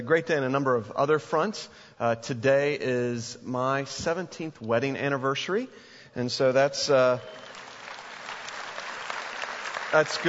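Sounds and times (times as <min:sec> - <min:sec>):
speech: 0:00.0 - 0:07.5, 0:09.9 - 0:10.2
church audience clapping: 0:07.0 - 0:10.2.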